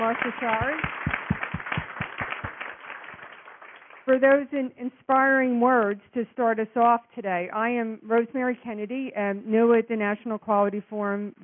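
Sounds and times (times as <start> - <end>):
audience clapping at a health-care quality meeting: 0.0 - 4.2
speech: 0.1 - 1.0, 4.1 - 11.4.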